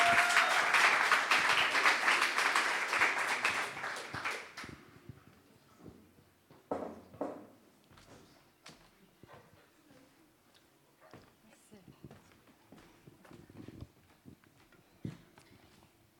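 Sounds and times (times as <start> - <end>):
crowd applause: 0.0 - 4.8.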